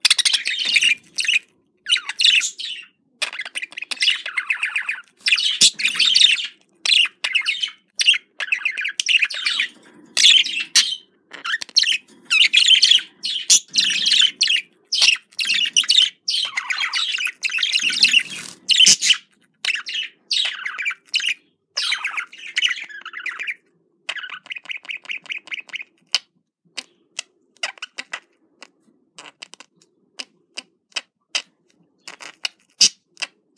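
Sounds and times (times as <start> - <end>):
budgerigar chattering: 0.0 - 26.0.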